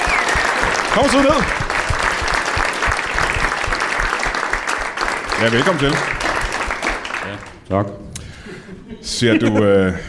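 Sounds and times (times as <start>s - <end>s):
studio audience applauding to welcome a mattress tester: 0.0s - 7.6s
speech: 1.0s - 1.6s, 5.4s - 6.2s, 7.3s - 8.2s, 9.0s - 10.0s
laughter: 8.4s - 10.0s.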